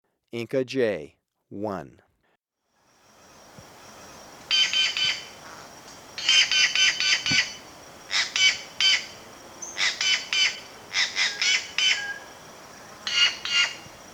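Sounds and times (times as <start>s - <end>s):
Inca Jay harsh buzzy rattling calls in Ecuador: 3.2s - 14.1s.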